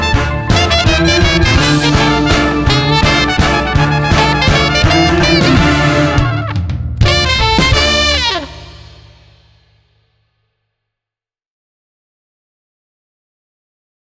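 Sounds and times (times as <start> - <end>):
swing music: 0.0 - 9.5.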